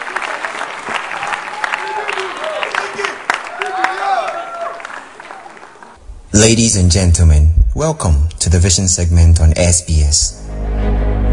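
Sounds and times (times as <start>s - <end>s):
audience applause at a church gathering: 0.0s - 6.0s
speech: 6.4s - 10.4s.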